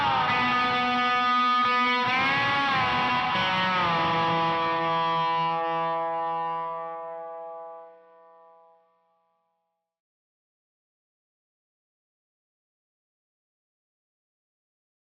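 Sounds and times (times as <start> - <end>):
bass guitar: 0.0 - 7.6.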